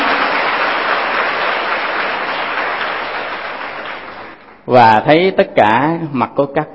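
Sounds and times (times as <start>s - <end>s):
audience applause: 0.0s - 4.6s
speech: 4.7s - 6.7s.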